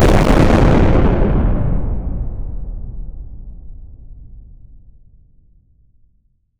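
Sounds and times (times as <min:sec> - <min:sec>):
bomb blasting, detonation: 0:00.0 - 0:03.6.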